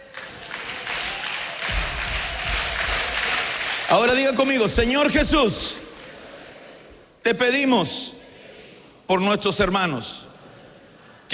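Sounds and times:
audience applauding: 0.0s - 6.8s
speech: 3.9s - 5.8s, 7.3s - 8.1s, 9.1s - 10.2s.

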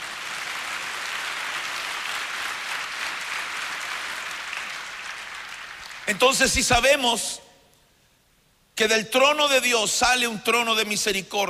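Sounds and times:
audience applauding: 0.0s - 6.2s
speech: 6.1s - 7.4s, 8.8s - 11.4s.

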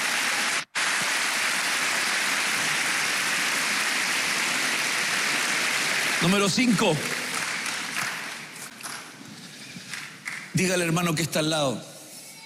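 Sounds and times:
audience applause: 0.0s - 9.1s
speech: 6.2s - 7.2s, 10.6s - 11.9s.

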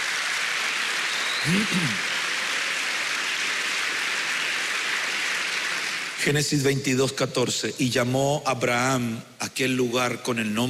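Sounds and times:
audience clapping: 0.0s - 6.7s
speech: 1.4s - 2.1s, 6.2s - 10.6s
voiced exclamation: 1.5s - 2.0s.

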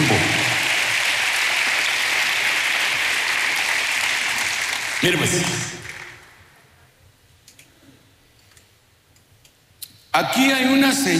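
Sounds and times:
audience applause: 0.0s - 6.4s
speech: 5.0s - 5.7s, 10.2s - 11.1s.

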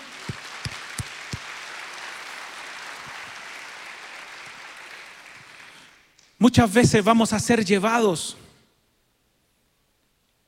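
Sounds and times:
audience applause: 0.0s - 6.1s
speech: 6.4s - 8.4s.

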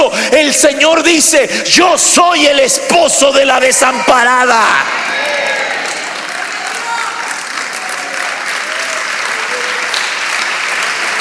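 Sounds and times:
speech: 0.0s - 5.6s
audience clapping hands: 5.3s - 11.1s.

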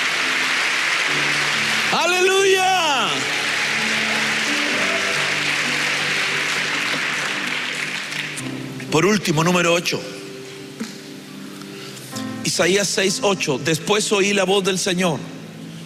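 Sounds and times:
audience clapping: 0.0s - 8.9s
speech: 1.9s - 3.2s, 8.9s - 10.2s, 12.6s - 15.4s.

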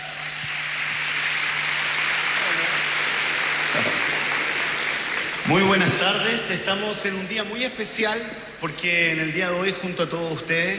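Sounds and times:
loud applause from audience: 0.0s - 6.8s
speech: 5.5s - 10.7s.

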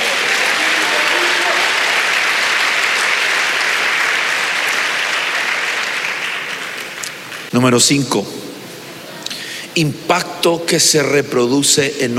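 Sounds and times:
applause: 0.0s - 7.5s
speech: 7.6s - 8.5s, 9.8s - 12.1s.

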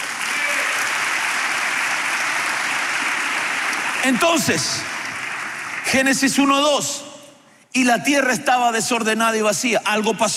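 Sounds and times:
audience clapping: 0.0s - 6.8s
speech: 4.0s - 4.9s, 5.8s - 7.1s, 7.7s - 10.3s.

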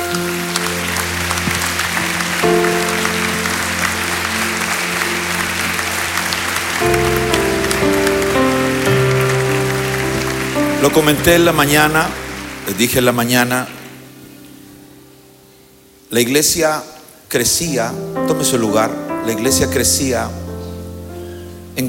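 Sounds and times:
audience clapping: 0.0s - 14.6s
sustained organ or keyboard chords: 0.0s - 15.7s, 17.6s - 21.8s
speech: 10.9s - 13.8s, 16.1s - 20.4s.

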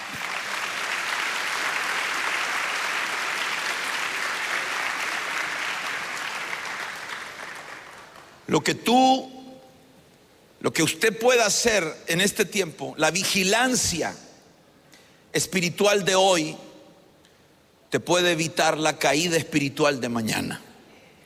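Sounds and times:
audience clapping hands: 0.0s - 8.5s
speech: 8.5s - 9.4s, 10.6s - 14.3s, 15.4s - 16.7s, 17.9s - 20.7s.

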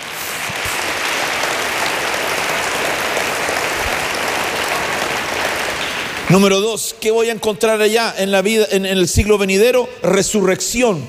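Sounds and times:
audience clapping: 0.0s - 6.8s
speech: 6.3s - 11.0s.

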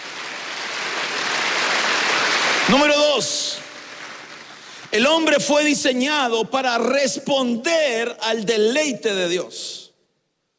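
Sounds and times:
audience clapping: 0.0s - 5.8s
speech: 2.7s - 3.4s, 4.9s - 9.8s.

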